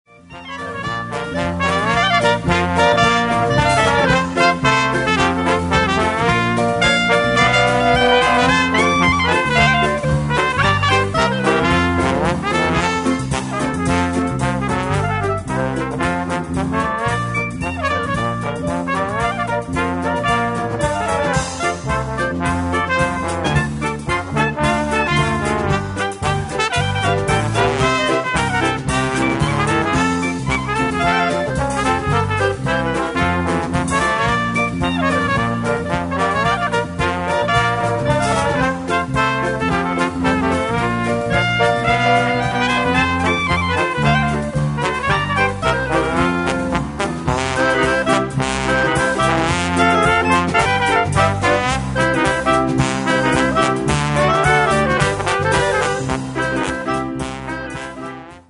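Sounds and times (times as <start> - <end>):
ragtime band: 0.1 - 58.4.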